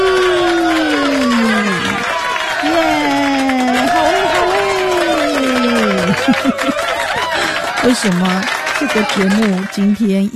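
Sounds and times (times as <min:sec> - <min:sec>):
sustained voice sliding downward in pitch: 0:00.0 - 0:06.3
laughter: 0:00.0 - 0:09.7
loud audience applause and cheering: 0:00.0 - 0:10.2
speech: 0:07.8 - 0:10.3.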